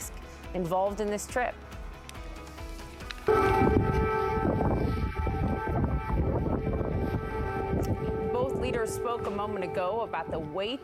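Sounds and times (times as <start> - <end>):
speech: 0.5 - 1.6, 8.9 - 10.8
air raid siren wailing: 3.3 - 10.8
low rumbling noise: 3.3 - 10.8.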